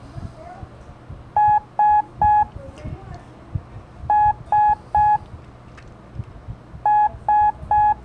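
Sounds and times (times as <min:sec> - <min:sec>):
low noise: 0:00.0 - 0:08.0
Morse code letter S electronic beeps: 0:01.4 - 0:02.5, 0:04.1 - 0:05.2, 0:06.9 - 0:08.0.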